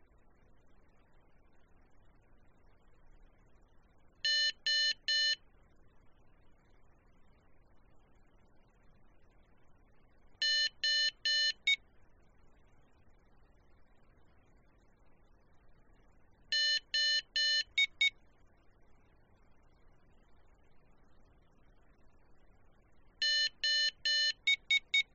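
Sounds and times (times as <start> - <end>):
morse code tones: 4.3 - 5.4, 10.4 - 11.8, 16.5 - 18.1, 23.2 - 25.1.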